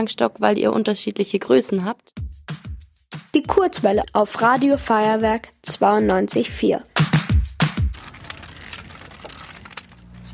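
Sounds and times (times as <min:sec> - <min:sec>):
speech: 0:00.0 - 0:02.2, 0:03.3 - 0:06.9
footsteps crunching through dry leaves: 0:07.8 - 0:10.3.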